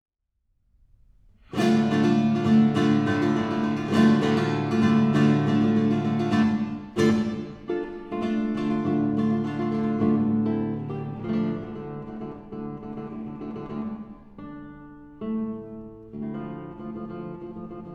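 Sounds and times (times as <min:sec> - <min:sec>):
rumba music: 0:01.5 - 0:14.4.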